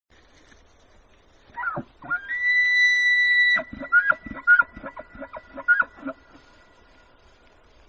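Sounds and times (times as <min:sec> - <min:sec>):
elk call: 0:01.5 - 0:06.7.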